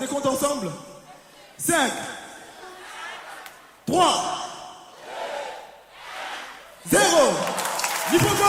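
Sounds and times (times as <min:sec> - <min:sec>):
speech: 0:00.0 - 0:00.9, 0:01.6 - 0:02.2, 0:03.9 - 0:04.4
church congregation cheering loudly in acclamation: 0:05.0 - 0:08.4.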